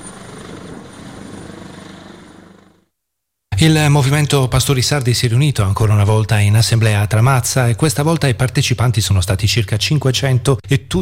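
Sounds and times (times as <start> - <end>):
rescue helicopter taking off from Alghero: 0.0 - 3.0
speech: 3.6 - 11.0.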